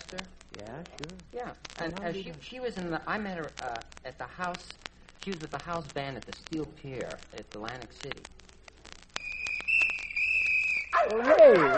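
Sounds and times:
speech: 0.1s - 8.4s, 11.0s - 11.7s
shrill whistle: 9.2s - 11.7s.

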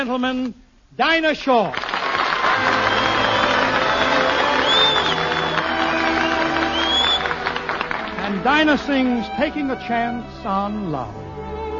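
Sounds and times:
speech: 0.0s - 1.8s, 8.4s - 11.2s
audience applause: 1.7s - 9.0s.

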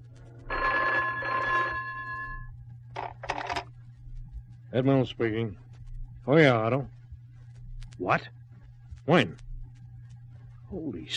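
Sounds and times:
telephone bell ringing: 0.5s - 2.4s
speech: 4.7s - 5.6s, 6.3s - 7.0s, 8.0s - 8.4s, 9.1s - 9.5s, 10.7s - 11.1s.

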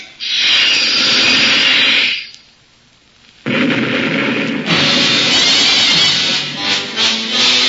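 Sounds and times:
torpedo launch blast, radio drama sound effect: 0.2s - 2.3s, 3.5s - 7.6s
warship blowing apart in a long rumbling explosion, radio drama effect: 3.5s - 6.3s.

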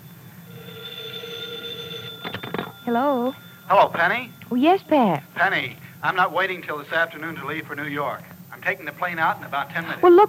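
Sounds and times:
telephone bell ringing: 0.4s - 6.2s
speech: 2.9s - 10.2s.

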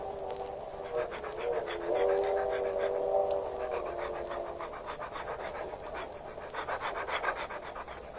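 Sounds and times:
dog panting while being walked: 0.0s - 8.1s
faint dog whimpering: 0.0s - 8.1s.

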